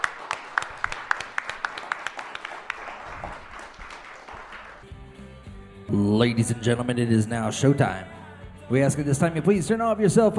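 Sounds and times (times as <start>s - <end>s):
audience applause: 0.0s - 4.9s
speech: 5.9s - 10.3s.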